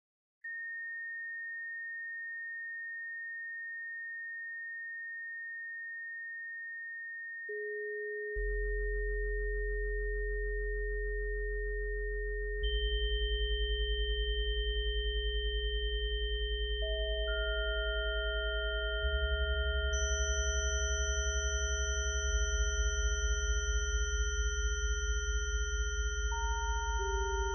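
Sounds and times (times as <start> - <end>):
gamma chimes: 0.4 - 27.5.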